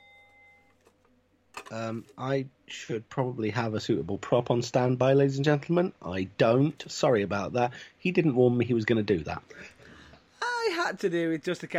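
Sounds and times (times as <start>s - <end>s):
bell struck: 0.0s - 0.6s
speech: 1.7s - 9.7s, 10.7s - 11.7s.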